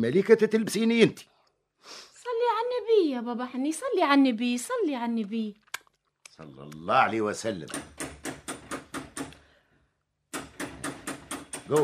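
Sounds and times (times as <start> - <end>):
speech: 0.0 - 5.6, 6.4 - 8.0, 11.7 - 11.8
knocking on a door at home: 7.7 - 9.3, 10.4 - 11.8.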